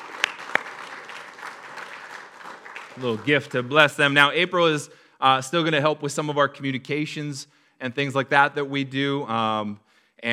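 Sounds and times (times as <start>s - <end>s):
scattered applause for departing council members: 0.0s - 3.8s
speech: 3.0s - 10.3s.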